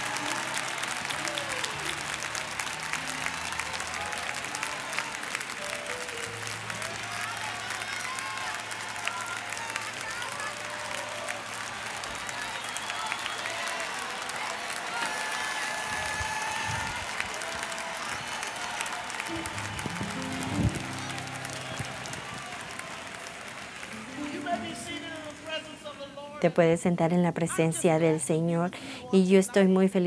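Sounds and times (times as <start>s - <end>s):
audience applause: 0.0s - 26.3s
speech: 26.4s - 30.0s.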